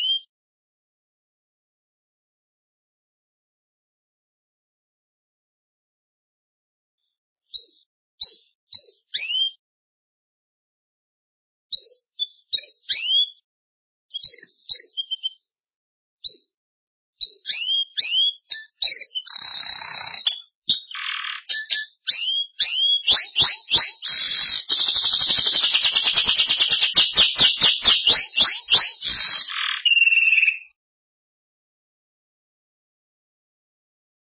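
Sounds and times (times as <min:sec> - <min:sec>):
Belgian canary song: 0:00.0 - 0:00.3, 0:07.5 - 0:09.6, 0:11.7 - 0:13.4, 0:14.1 - 0:15.4, 0:16.2 - 0:16.6, 0:17.2 - 0:30.8.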